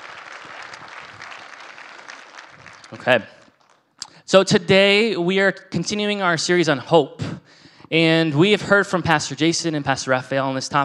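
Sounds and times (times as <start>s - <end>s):
audience applause: 0.0s - 3.9s
speech: 2.9s - 3.4s, 4.3s - 7.2s, 7.9s - 10.8s.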